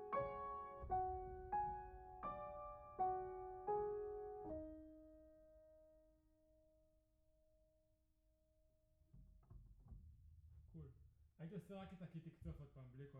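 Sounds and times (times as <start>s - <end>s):
piano: 0.0s - 7.0s.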